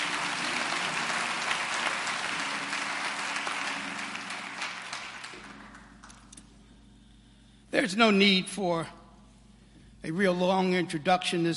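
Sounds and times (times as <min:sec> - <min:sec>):
audience hand clapping: 0:00.0 - 0:06.5
speech: 0:07.8 - 0:09.0, 0:10.1 - 0:11.5.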